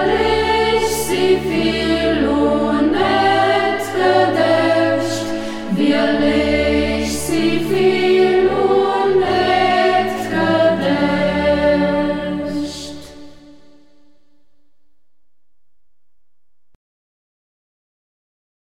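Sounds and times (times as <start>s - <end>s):
choir singing in dialect: 0.0s - 14.1s.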